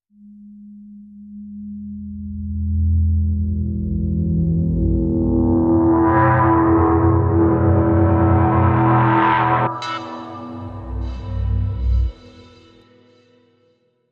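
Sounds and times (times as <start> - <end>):
music sting: 3.4 - 13.2.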